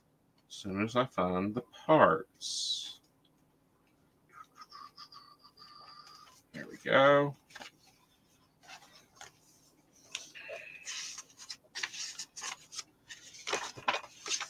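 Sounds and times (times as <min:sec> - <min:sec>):
speech: 0:00.5 - 0:03.0, 0:06.6 - 0:07.7
quote sticker peeled and pressed into a planner: 0:08.6 - 0:14.4.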